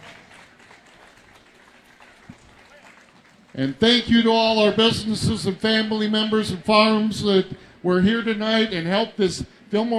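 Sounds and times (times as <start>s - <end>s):
round of applause: 0.0s - 3.6s
speech: 3.6s - 9.9s.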